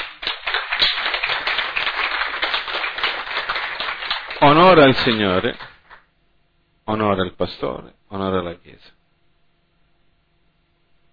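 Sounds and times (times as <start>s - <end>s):
crowd applauding: 0.0s - 6.0s
speech: 4.4s - 5.7s, 6.9s - 9.0s.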